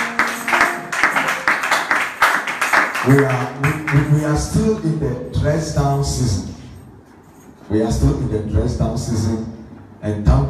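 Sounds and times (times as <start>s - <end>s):
audience clapping hands: 0.0s - 4.4s
speech: 3.1s - 6.5s, 7.7s - 10.4s.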